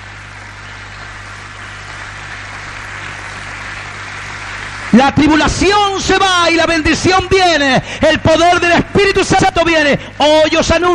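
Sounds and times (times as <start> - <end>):
audience applauding: 0.0 - 7.1
speech: 4.9 - 10.9.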